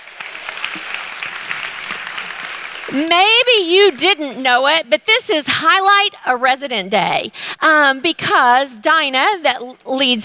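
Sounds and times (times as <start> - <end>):
congregation applauding the worship team during a church service: 0.0 - 4.0
speech: 2.9 - 10.2.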